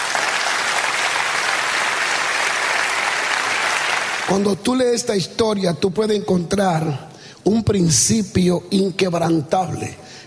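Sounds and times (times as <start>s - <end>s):
audience applauding: 0.0s - 4.4s
speech: 4.3s - 10.2s.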